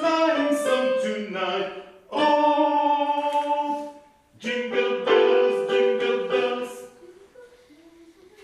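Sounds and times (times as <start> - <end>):
soprano voices singing a Christmas song: 0.0 - 7.7.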